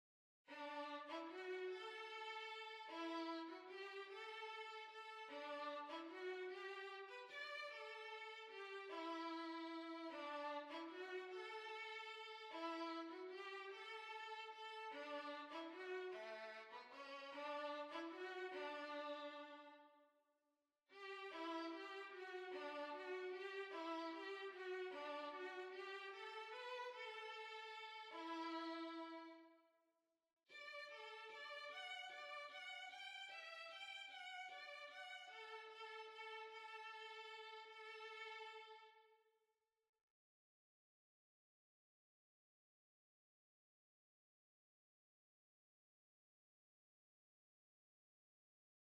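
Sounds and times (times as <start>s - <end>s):
violin: 0.5s - 19.9s, 20.9s - 29.5s, 30.5s - 39.0s.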